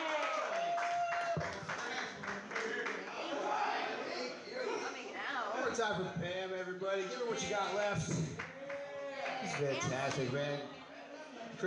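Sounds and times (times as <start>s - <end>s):
audience clapping for a comedian: 0.0s - 3.3s, 7.7s - 10.3s
scattered audience voices: 1.3s - 11.6s
speech: 5.8s - 8.3s, 9.6s - 10.8s.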